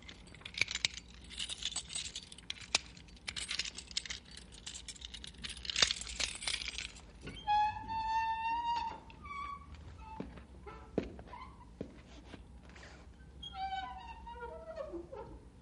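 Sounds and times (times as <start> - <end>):
keys jangling: 0.0 - 7.4
jail cell door hinges squealing: 7.2 - 11.7, 13.4 - 15.4.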